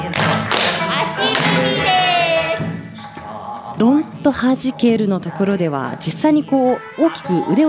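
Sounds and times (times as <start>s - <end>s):
hand claps in a Japanese folk dance song: 0.1s - 1.9s
speech: 3.8s - 7.6s.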